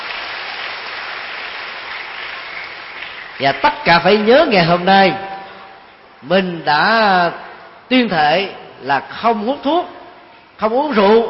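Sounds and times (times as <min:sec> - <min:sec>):
crowd clapping: 0:00.0 - 0:04.3
speech: 0:03.4 - 0:05.3, 0:06.2 - 0:10.0, 0:10.6 - 0:11.2.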